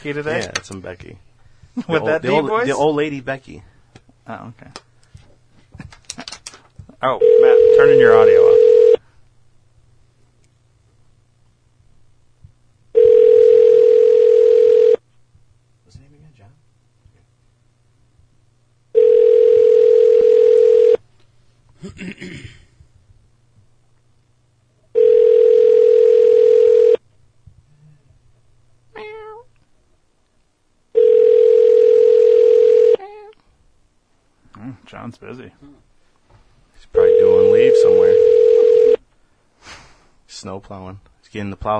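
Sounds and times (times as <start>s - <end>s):
speech: 0.0s - 3.7s, 4.3s - 4.8s, 7.0s - 8.8s, 35.1s - 35.9s, 37.6s - 38.2s, 40.4s - 41.7s
ringback tone of an outgoing phone call: 7.2s - 9.0s, 13.0s - 15.0s, 19.0s - 21.0s, 25.0s - 27.0s, 31.0s - 33.0s, 37.0s - 39.0s.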